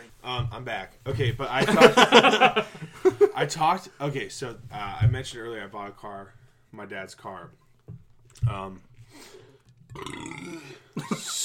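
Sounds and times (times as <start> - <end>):
speech: 0.2 - 9.4, 10.0 - 11.4
laughter: 1.5 - 3.5, 11.0 - 11.4
deep burp: 9.9 - 11.0.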